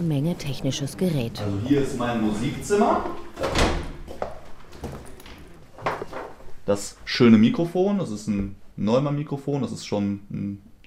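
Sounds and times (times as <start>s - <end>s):
speech: 0.0s - 3.8s, 6.7s - 10.8s
white wall cabinet door and contents knocking in a small music room: 3.4s - 4.1s.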